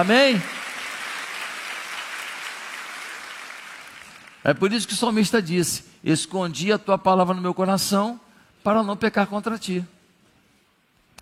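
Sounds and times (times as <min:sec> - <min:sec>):
speech: 0:00.0 - 0:00.5, 0:04.4 - 0:10.0
audience applause: 0:00.0 - 0:04.5.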